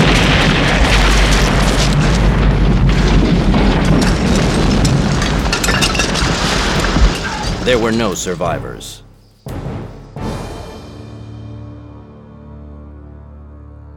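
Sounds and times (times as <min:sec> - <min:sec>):
grenade explosion under a helicopter: 0:00.0 - 0:08.8
speech: 0:07.7 - 0:09.0.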